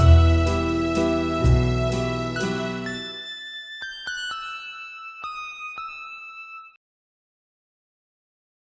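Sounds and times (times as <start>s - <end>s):
mandolin: 0.0s - 3.2s.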